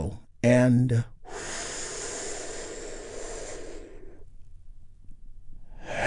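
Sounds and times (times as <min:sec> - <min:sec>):
speech: 0:00.0 - 0:01.1
big deep breath taken together during a guided healing meditation: 0:01.2 - 0:04.4, 0:05.6 - 0:06.0.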